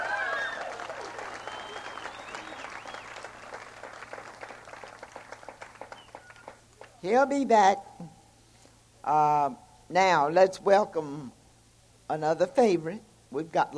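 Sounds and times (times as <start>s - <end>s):
audience applause: 0.0s - 7.0s
speech: 7.0s - 7.8s, 9.1s - 11.4s, 12.1s - 13.7s.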